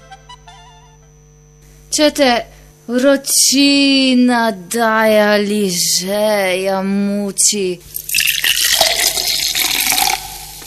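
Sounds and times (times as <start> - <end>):
speech: 2.0 - 8.0
cold fizzy drink bubbling and hissing: 7.9 - 10.6.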